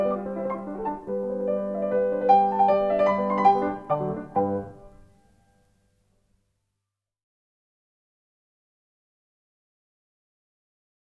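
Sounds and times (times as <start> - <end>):
piano sonata: 0.0 - 5.2.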